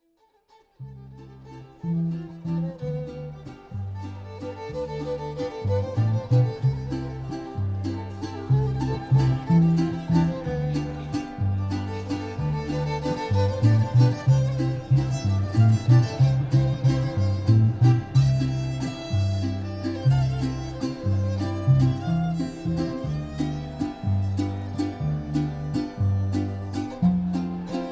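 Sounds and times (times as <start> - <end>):
mariachi music: 0.8 - 27.9.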